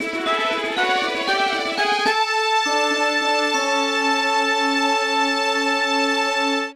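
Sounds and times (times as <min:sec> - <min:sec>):
stadium cup final winner fanfare: 0:00.0 - 0:06.7.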